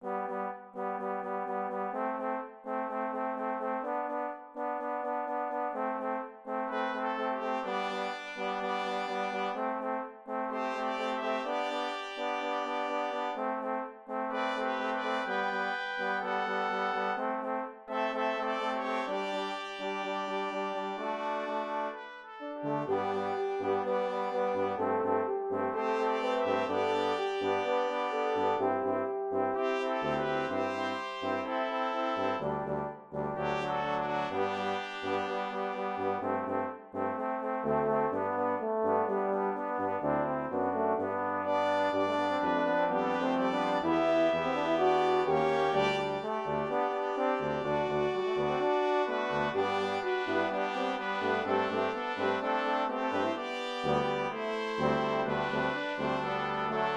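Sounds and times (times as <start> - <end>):
brass sextet playing a hymn: 0.0 - 56.9.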